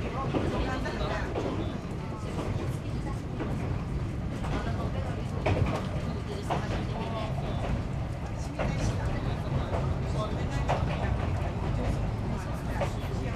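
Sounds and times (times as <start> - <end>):
Tsugaru stove train: 0.0 - 13.3.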